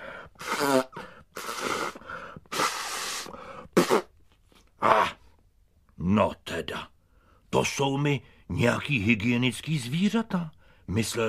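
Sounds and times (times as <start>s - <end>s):
loud nose blowing into a handkerchief: 0.0s - 4.7s
speech: 7.6s - 11.2s.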